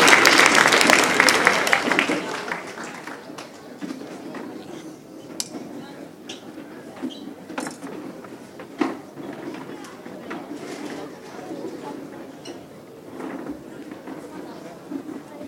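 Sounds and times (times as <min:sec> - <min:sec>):
audience applause: 0:00.0 - 0:03.8.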